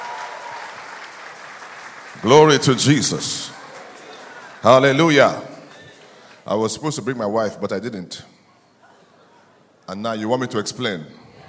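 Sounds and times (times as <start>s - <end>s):
audience applause: 0.0s - 6.4s
speech: 2.2s - 3.6s, 4.6s - 5.5s, 6.5s - 8.3s, 9.9s - 11.2s.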